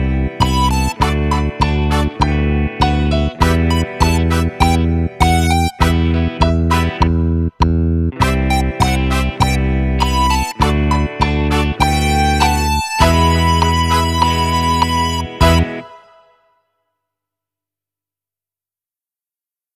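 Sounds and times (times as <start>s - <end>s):
funky keyboard: 0.0s - 16.4s.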